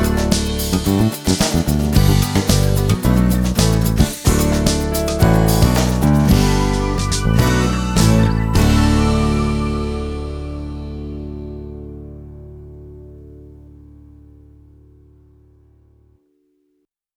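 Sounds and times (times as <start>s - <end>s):
telephone announcement music: 0.0s - 11.1s.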